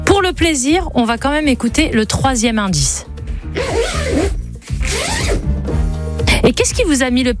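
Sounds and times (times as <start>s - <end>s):
speech: 0.2s - 4.4s, 6.4s - 7.3s
suitcase zipper being pulled: 3.4s - 5.6s.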